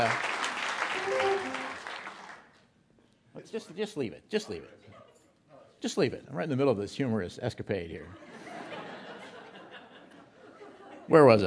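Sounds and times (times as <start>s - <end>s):
speech: 0.0s - 0.3s, 3.4s - 5.0s, 5.8s - 8.3s, 11.1s - 11.4s
audience applause: 0.0s - 2.5s
laughter: 8.2s - 11.1s.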